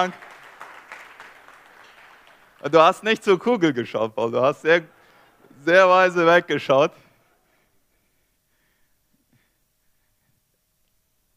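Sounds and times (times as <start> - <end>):
speech: 0.0 - 0.2, 2.6 - 5.0, 5.6 - 7.0
audience applauding: 0.0 - 3.5.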